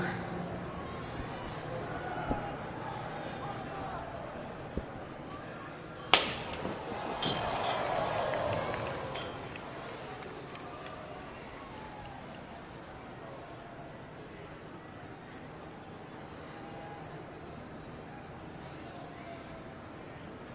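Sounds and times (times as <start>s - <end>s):
crowd murmur: 0.0s - 20.5s
loud slap: 6.2s - 6.8s.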